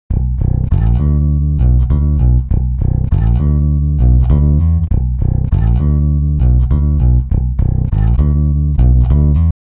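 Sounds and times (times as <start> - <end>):
bass: 0.1 - 9.6.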